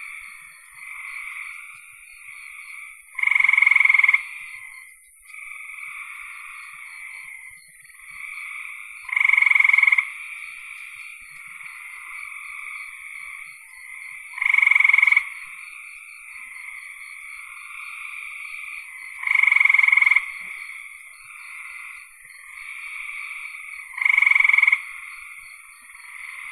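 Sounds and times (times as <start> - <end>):
frog trill call: 0.0 - 26.5.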